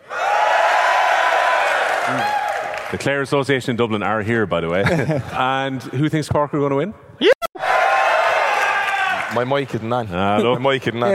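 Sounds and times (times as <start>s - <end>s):
audience cheering for Clare in a straw poll at a Focus Ireland event: 0.0s - 3.0s, 7.6s - 9.6s
speech: 2.1s - 7.3s, 9.4s - 11.1s.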